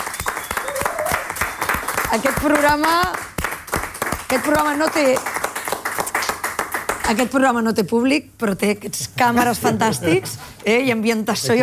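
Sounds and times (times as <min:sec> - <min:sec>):
production team applauding: 0:00.0 - 0:07.3
speech: 0:02.1 - 0:03.3, 0:04.3 - 0:05.3, 0:07.1 - 0:11.6.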